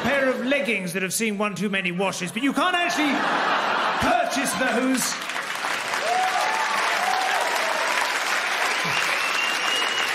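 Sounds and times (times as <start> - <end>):
speech: 0.6 - 5.4
laughter: 2.4 - 5.2
crowd applause: 3.2 - 10.1
faint whoops and cheers: 5.9 - 10.1.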